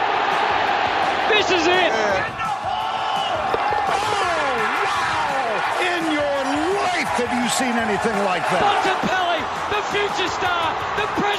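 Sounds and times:
crowd cheering at an Australian football match: 0.0s - 11.3s
speech: 1.4s - 2.4s, 7.2s - 11.3s.

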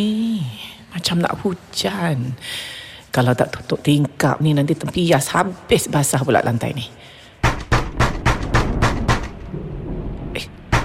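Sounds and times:
speech: 0.0s - 0.2s, 1.0s - 7.2s
loud sharp knocking on a door at night: 7.4s - 9.4s, 10.7s - 10.8s.

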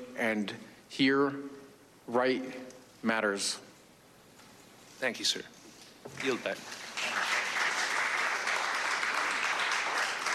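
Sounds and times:
speech: 0.2s - 3.7s, 5.0s - 6.8s
smattering of applause in a hearing room: 6.2s - 10.3s.

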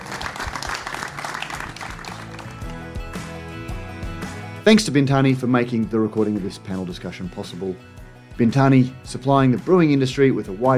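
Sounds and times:
audience applause: 0.0s - 2.9s
speech: 4.7s - 10.7s.

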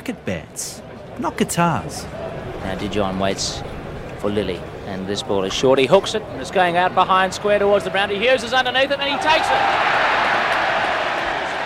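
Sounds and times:
speech: 0.1s - 10.3s
large cricket crowd cheering: 6.5s - 11.6s.

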